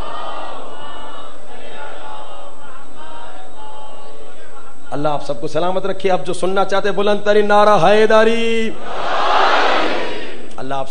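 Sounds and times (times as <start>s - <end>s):
crowd at a religious gathering chanting salawat in unison: 0.0s - 4.8s, 8.8s - 10.5s
speech: 5.0s - 9.2s, 10.6s - 10.8s.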